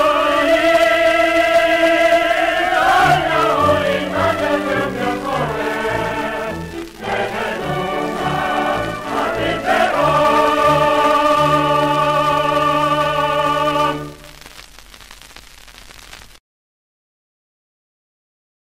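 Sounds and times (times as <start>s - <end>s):
choir singing: 0.0s - 14.3s.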